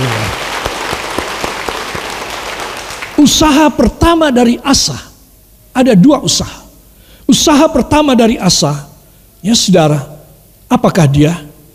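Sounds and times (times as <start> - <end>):
audience applause: 0.0 - 3.2
speech: 3.2 - 5.1, 5.8 - 6.6, 7.3 - 10.1, 10.7 - 11.5.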